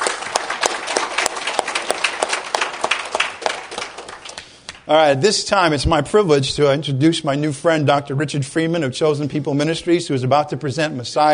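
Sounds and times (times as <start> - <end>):
crowd applauding: 0.0 - 4.8
speech: 4.9 - 11.3.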